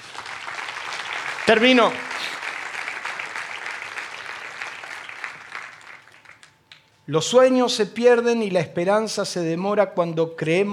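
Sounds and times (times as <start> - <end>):
audience applause: 0.0 - 6.6
speech: 1.5 - 2.1, 7.1 - 10.7.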